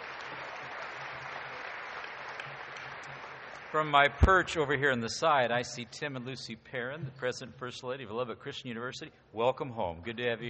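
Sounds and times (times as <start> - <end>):
church audience applauding the praise team: 0.0 - 4.9
speech: 3.7 - 10.4.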